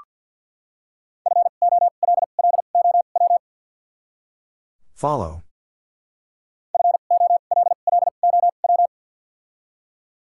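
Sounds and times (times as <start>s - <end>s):
Morse code tones: 1.3s - 3.4s, 6.8s - 8.9s
speech: 5.0s - 5.5s.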